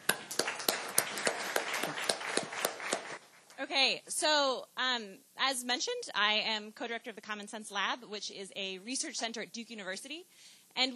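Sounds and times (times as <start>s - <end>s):
audience clapping to welcome a speaker: 0.0s - 3.4s
speech: 3.8s - 10.9s.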